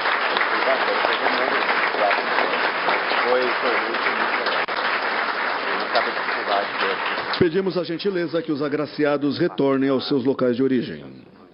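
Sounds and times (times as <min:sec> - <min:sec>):
audience applause: 0:00.0 - 0:08.4
speech: 0:06.0 - 0:11.3.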